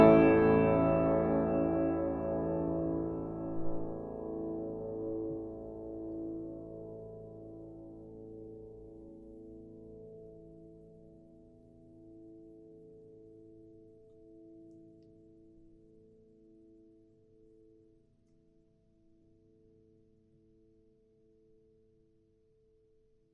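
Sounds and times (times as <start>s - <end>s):
piano: 0.0s - 18.0s.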